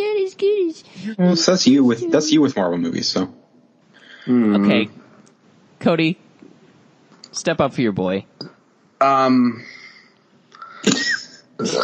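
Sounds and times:
speech: 0.8s - 3.4s, 4.2s - 5.0s, 5.8s - 6.2s, 7.3s - 8.4s, 9.0s - 9.7s, 11.6s - 11.8s
burp: 9.0s - 9.6s, 10.8s - 11.8s.

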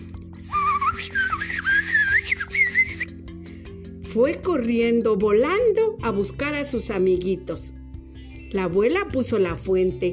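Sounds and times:
person whistling birdsong: 0.4s - 3.2s
speech: 4.2s - 7.8s, 8.5s - 10.1s.

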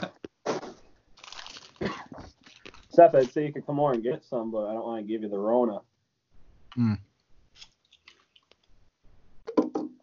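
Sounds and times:
chewing pistachios whole with their shells: 1.2s - 2.9s, 7.6s - 8.7s
speech: 3.0s - 5.9s, 6.8s - 7.1s.

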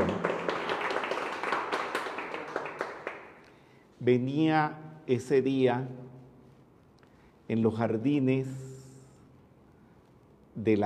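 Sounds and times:
small group applauding: 0.0s - 3.6s
speech: 4.0s - 6.1s, 7.5s - 8.8s, 10.6s - 10.8s.

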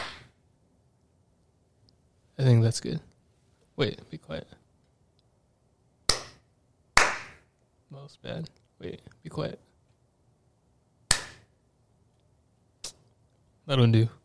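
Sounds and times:
hand clap for audio sync: 0.0s - 0.3s, 6.1s - 6.4s, 7.0s - 7.5s, 11.1s - 11.5s
speech: 2.4s - 3.1s, 3.8s - 4.6s, 7.9s - 9.7s, 13.7s - 14.2s.

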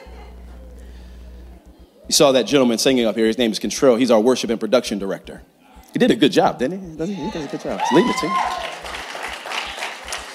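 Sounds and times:
speech: 2.1s - 8.7s
audience clapping: 7.2s - 10.3s.

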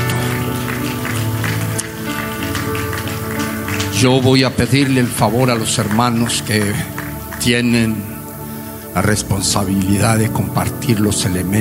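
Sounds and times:
audience clapping hands as offering: 0.0s - 9.2s
speech: 4.0s - 8.2s, 9.0s - 11.5s.

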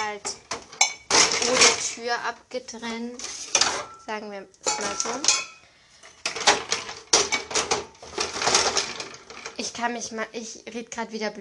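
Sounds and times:
carried bottles clinking: 0.0s - 1.9s, 4.7s - 9.5s
speech: 0.1s - 0.4s, 1.5s - 5.5s, 9.6s - 11.4s.

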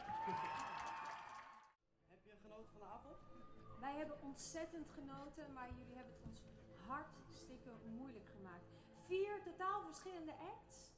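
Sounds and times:
audience applause: 0.0s - 1.8s
speech: 0.3s - 0.6s, 2.6s - 10.9s.

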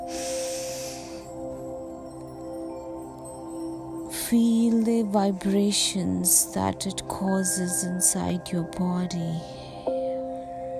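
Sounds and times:
deep inhale during a guided breathing exercise: 0.0s - 1.5s
speech: 4.3s - 9.6s.

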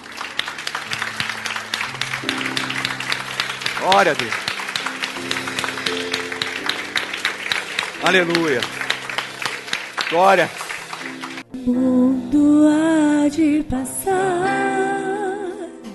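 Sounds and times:
audience applause: 0.0s - 11.4s
sustained low musical tones: 0.0s - 15.7s
speech: 3.8s - 4.5s, 8.0s - 8.8s, 10.1s - 10.6s, 11.6s - 15.1s.

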